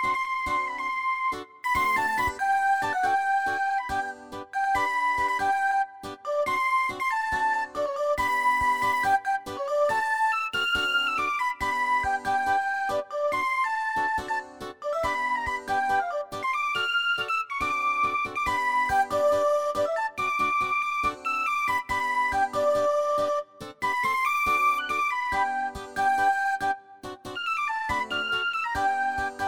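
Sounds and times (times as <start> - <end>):
kwela flute: 0.0 - 29.4
kwela guitars: 0.0 - 29.4.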